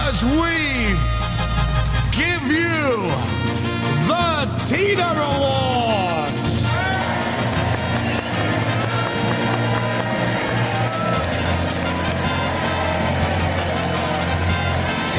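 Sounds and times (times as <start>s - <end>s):
speech: 0.2s - 1.2s, 2.1s - 6.5s
large crowd booing: 6.5s - 15.1s.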